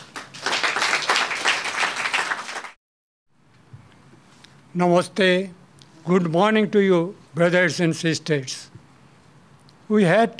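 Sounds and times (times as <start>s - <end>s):
audience applause welcoming a speaker: 0.0s - 2.8s
speech: 4.7s - 8.6s, 9.9s - 10.3s.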